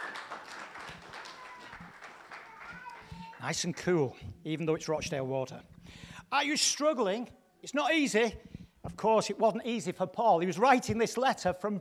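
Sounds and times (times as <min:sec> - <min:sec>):
audience applause: 0:00.0 - 0:03.9
speech: 0:03.4 - 0:05.7, 0:06.3 - 0:11.7.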